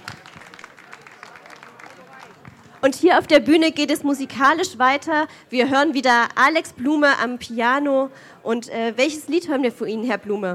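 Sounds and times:
audience applause: 0:00.0 - 0:02.8
speech: 0:02.8 - 0:10.5.

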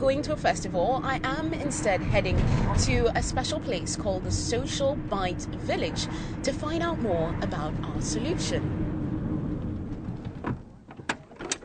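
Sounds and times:
speech: 0:00.0 - 0:08.8
faint low rumble: 0:00.0 - 0:10.9
car door clicks and knocks as someone gets out of a car by the seaside: 0:10.0 - 0:11.6.

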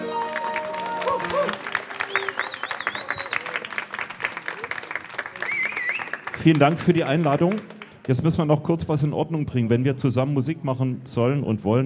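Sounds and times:
audience applause: 0:00.0 - 0:08.2
speech: 0:06.4 - 0:11.8.

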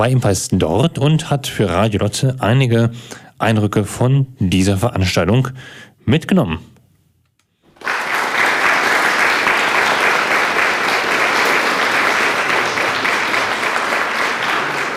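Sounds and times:
speech: 0:00.0 - 0:06.7
audience applause: 0:07.7 - 0:14.9.

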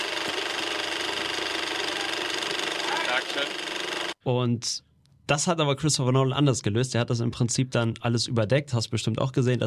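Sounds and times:
IMAX film camera running: 0:00.0 - 0:04.2
speech: 0:03.2 - 0:09.6.

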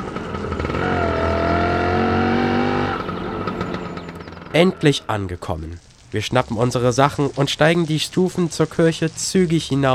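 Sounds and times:
Ape three-wheeler engine straining uphill: 0:00.0 - 0:05.1
speech: 0:04.6 - 0:09.9.

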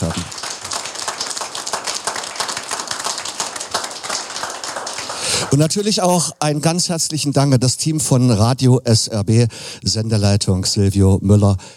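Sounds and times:
audience applause: 0:00.0 - 0:05.8
speech: 0:05.5 - 0:11.7.

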